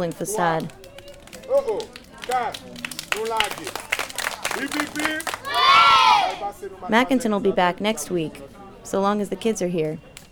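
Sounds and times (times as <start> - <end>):
speech: 0.0 - 0.9, 1.5 - 3.9, 4.5 - 10.1
children clapping: 0.0 - 5.6.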